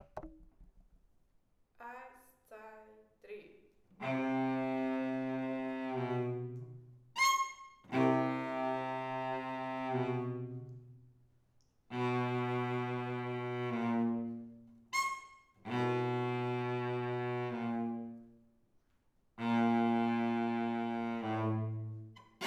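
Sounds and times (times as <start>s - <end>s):
cello: 4.0s - 11.0s, 11.9s - 18.4s, 19.4s - 22.4s.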